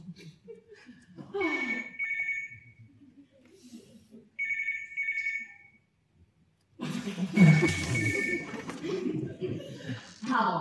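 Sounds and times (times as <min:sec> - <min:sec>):
telephone ringing with electronic trill: 0:01.6 - 0:02.6, 0:04.4 - 0:05.7, 0:07.4 - 0:08.8
laughter: 0:02.8 - 0:04.4, 0:06.8 - 0:10.3
loud burst of noise: 0:06.8 - 0:10.5.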